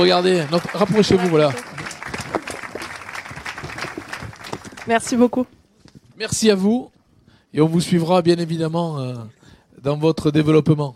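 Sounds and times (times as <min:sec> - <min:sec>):
speech: 0:00.0 - 0:01.7, 0:04.9 - 0:05.6, 0:06.2 - 0:10.9
audience applause at award ceremony: 0:00.0 - 0:05.3.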